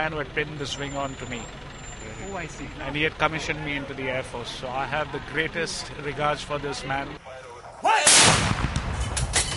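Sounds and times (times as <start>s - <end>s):
speech: 0.0s - 7.2s
gun salute fired by World War II-era 25-pounder guns: 7.9s - 9.4s.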